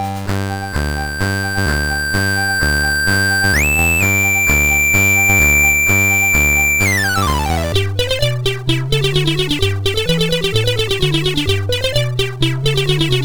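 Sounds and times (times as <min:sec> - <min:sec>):
chiptune music on a MOS6581R4 chip: 0:00.2 - 0:13.2.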